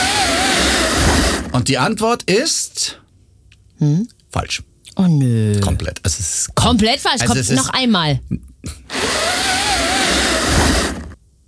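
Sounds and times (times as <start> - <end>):
pleated window blind being pulled up: 0.0 - 1.7, 8.9 - 11.2
speech: 1.6 - 3.0, 3.8 - 9.3.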